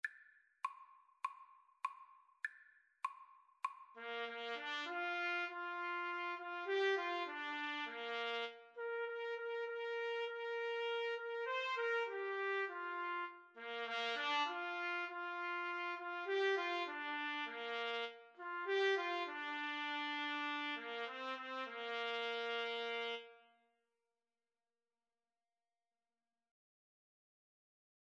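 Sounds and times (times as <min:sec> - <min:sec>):
trumpet duet: 0:04.0 - 0:23.5.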